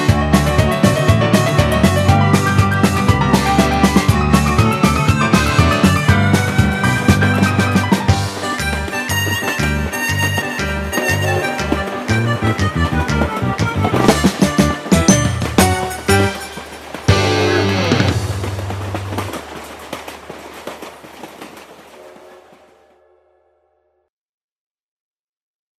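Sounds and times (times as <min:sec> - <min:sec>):
orchestra: 0:00.0 - 0:19.4.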